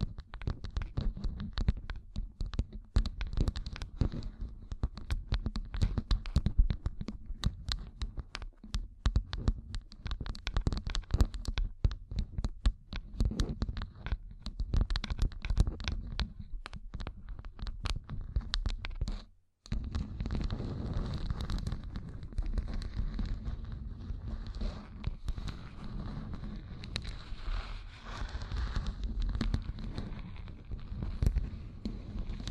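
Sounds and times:
gem-covered fingertips tapping and scratching: 0:00.0 - 0:32.4.

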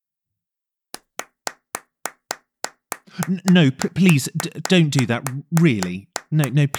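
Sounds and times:
hands clapping: 0:01.0 - 0:06.7
speech: 0:03.1 - 0:06.7.

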